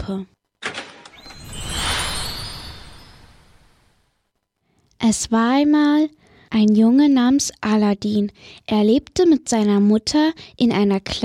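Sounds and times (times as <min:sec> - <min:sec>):
speech: 0:00.1 - 0:00.4, 0:05.0 - 0:11.2
magical whoosh with shimmering high tones for a golden fairy-tale gate opening: 0:01.1 - 0:04.2.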